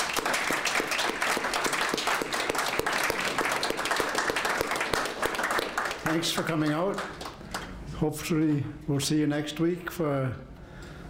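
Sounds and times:
crowd applauding: 0.0 - 7.8
speech: 6.2 - 7.2, 8.0 - 10.5.

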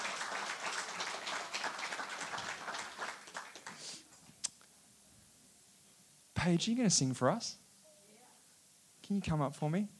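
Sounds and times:
audience applause: 0.0 - 4.0
speech: 6.4 - 7.6, 9.1 - 9.9.

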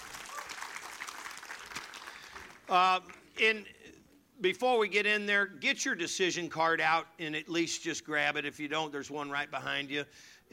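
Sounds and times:
audience applause: 0.0 - 3.2
speech: 2.7 - 3.8, 4.4 - 10.5.

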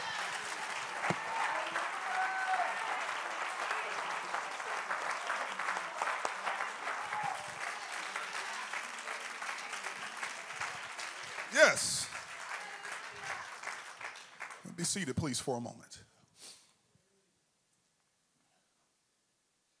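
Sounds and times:
faint cheers: 0.0 - 4.2, 6.7 - 8.8, 11.4 - 13.6
audience applause: 0.0 - 15.1
speech: 11.6 - 12.0, 14.8 - 16.0.

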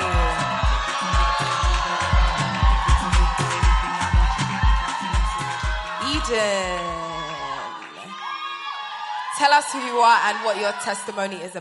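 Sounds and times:
thumping low beat: 0.0 - 6.3
audience clapping along: 0.0 - 10.8
crowd noise: 0.0 - 11.5
speech: 6.3 - 7.0, 9.4 - 11.5.

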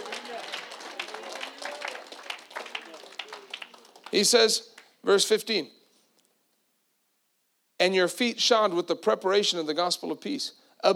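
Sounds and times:
audience clapping hands: 0.0 - 5.0
speech: 4.1 - 5.8, 7.8 - 10.9.

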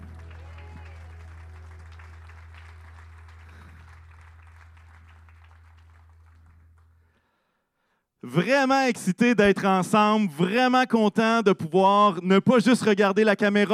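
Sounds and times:
scattered cheers and voices: 0.0 - 1.6
audience applause: 0.0 - 6.9
low constant hum: 0.0 - 7.2
speech: 8.2 - 13.7.

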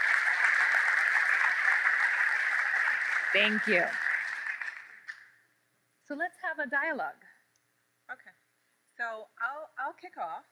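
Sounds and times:
audience applause: 0.0 - 5.4
speech: 3.3 - 4.0, 6.1 - 7.3, 9.0 - 10.5.

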